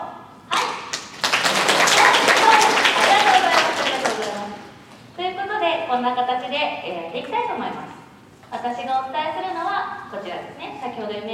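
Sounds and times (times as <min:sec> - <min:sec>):
audience applause at a presentation: 0:00.9 - 0:04.6
speech: 0:06.0 - 0:11.3.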